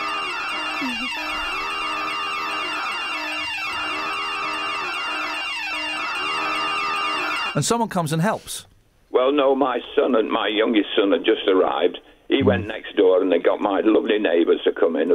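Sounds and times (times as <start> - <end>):
personal emergency alarm button sounding: 0.0 - 7.6
speech: 0.8 - 1.6, 7.6 - 15.1.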